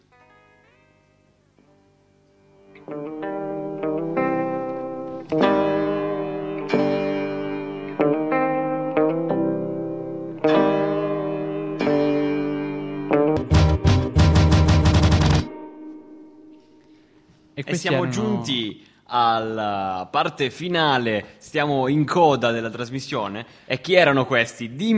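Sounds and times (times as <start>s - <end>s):
loud rock song with distorted guitar chords: 2.8s - 15.8s
speech: 2.9s - 3.4s, 17.7s - 24.9s.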